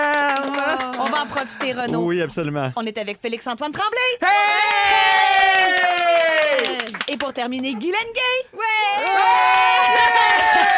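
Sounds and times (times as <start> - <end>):
audience clapping: 0.0 - 2.1, 4.9 - 7.6, 9.1 - 10.7
speech: 1.2 - 10.7
excited shouts and whoops: 4.2 - 6.8, 8.6 - 10.7.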